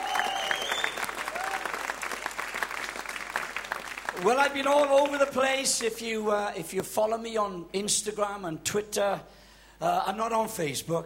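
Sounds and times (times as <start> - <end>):
audience applause: 0.0 - 5.4
speech: 4.2 - 11.0.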